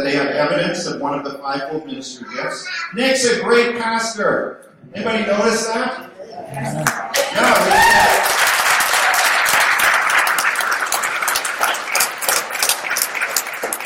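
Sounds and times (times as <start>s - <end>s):
speech: 0.0s - 8.3s
voices cheering: 6.5s - 10.2s
audience clapping: 6.7s - 13.8s.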